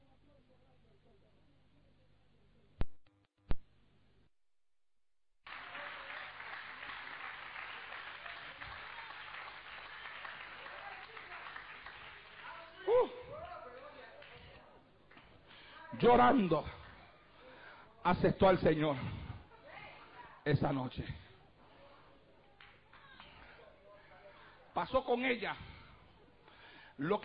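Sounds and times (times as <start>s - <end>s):
audience applause: 5.4s - 14.5s
speech: 16.0s - 16.8s, 18.0s - 19.2s, 20.4s - 21.2s, 24.8s - 25.7s, 27.0s - 27.2s.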